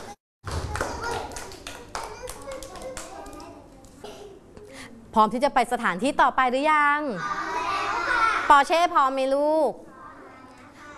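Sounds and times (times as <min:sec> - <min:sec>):
children clapping hands: 0:00.4 - 0:04.0
speech: 0:05.2 - 0:07.4, 0:08.5 - 0:09.9.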